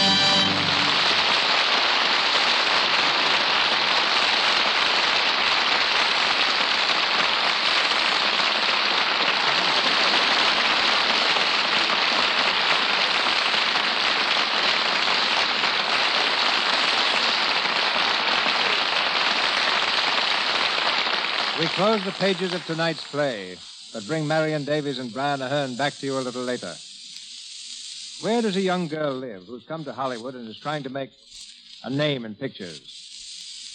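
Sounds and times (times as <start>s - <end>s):
heavy rain of a storm drumming on a surface: 0.1s - 23.1s
speech: 21.9s - 26.9s, 28.2s - 33.0s.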